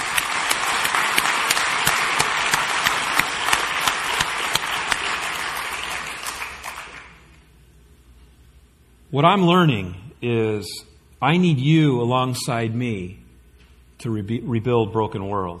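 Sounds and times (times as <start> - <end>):
round of applause: 0.0 - 7.4
speech: 9.1 - 13.2, 14.0 - 15.5.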